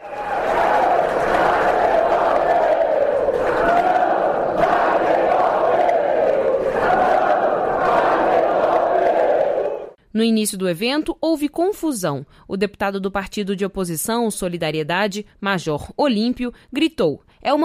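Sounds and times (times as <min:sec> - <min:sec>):
crowd shouting slogans at a ceremony: 0:00.0 - 0:10.0
speech: 0:10.2 - 0:17.6.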